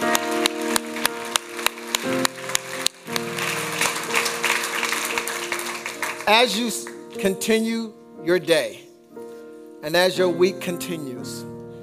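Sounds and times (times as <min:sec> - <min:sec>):
audience clapping hands: 0:00.0 - 0:07.1
speech: 0:06.3 - 0:08.8, 0:09.8 - 0:11.5.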